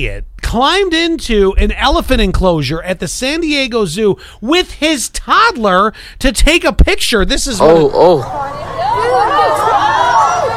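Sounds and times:
speech: 0.0 - 8.6
crowd at the elephant enclosure of the San Diego Zoo chattering and calling out: 7.7 - 10.5.

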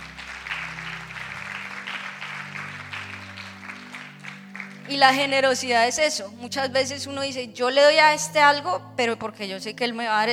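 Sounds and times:
audience applauding: 0.0 - 5.3
speech: 4.9 - 10.3.

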